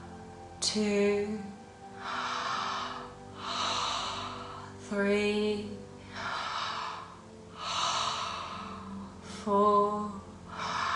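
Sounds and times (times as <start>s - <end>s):
faint steady hum: 0.0s - 10.9s
speech: 0.6s - 2.2s, 4.9s - 5.8s, 9.5s - 10.1s
person breathing in through the mouth and breathing out: 1.8s - 4.9s, 5.9s - 9.4s, 10.4s - 10.9s.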